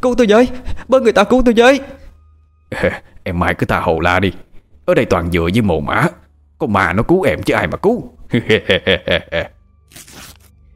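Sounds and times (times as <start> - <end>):
speech: 0.0 - 2.0, 2.7 - 10.3
laughter: 8.3 - 9.5
cloth áo bà ba blouse being torn open: 9.8 - 10.6.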